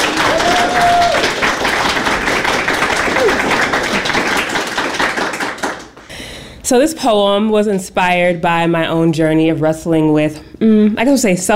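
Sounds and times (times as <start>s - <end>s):
audience applause: 0.0s - 6.1s
person whooping: 0.1s - 1.4s, 3.1s - 3.6s
speech: 6.7s - 11.5s.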